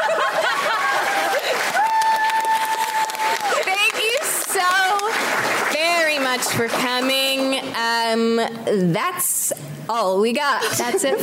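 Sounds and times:
laughter: 0.0s - 1.8s, 10.6s - 11.2s
audience applause: 0.0s - 7.2s
speech: 6.5s - 9.3s, 9.9s - 11.2s.

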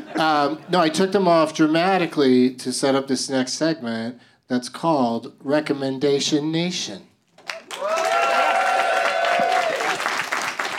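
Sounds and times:
speech: 0.2s - 7.1s
audience applause: 7.4s - 10.7s.

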